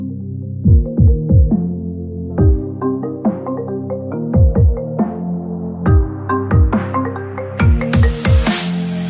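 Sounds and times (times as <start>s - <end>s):
ultra dubstep ringtone: 0.7s - 1.6s, 2.4s - 5.3s, 5.9s - 9.0s.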